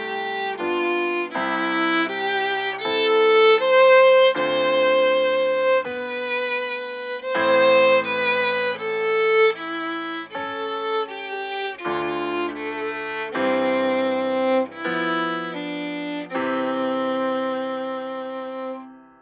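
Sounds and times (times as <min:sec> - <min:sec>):
violin etude: 0:00.0 - 0:19.2.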